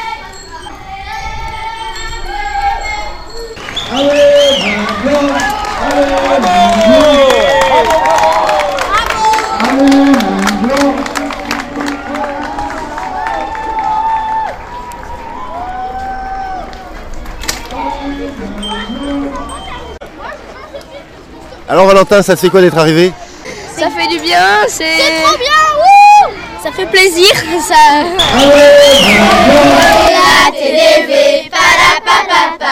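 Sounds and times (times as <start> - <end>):
overlapping voices shouting and whooping in excitement: 1.6 - 10.8, 11.8 - 17.0, 25.0 - 30.2
large crowd clapping and cheering: 3.6 - 19.5, 28.2 - 30.3
speech: 22.0 - 23.2, 23.8 - 25.7, 26.6 - 31.4, 32.1 - 32.7.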